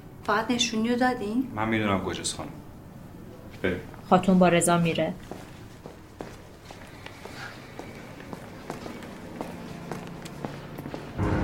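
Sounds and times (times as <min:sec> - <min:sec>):
speech: 0:00.3 - 0:02.6, 0:03.6 - 0:05.4
footsteps coming down a flight of stairs: 0:05.2 - 0:11.2.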